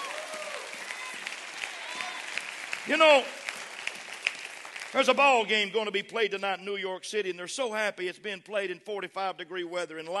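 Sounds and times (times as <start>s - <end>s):
audience clapping hands: 0.0s - 6.1s
speech: 2.8s - 3.4s, 4.9s - 10.1s.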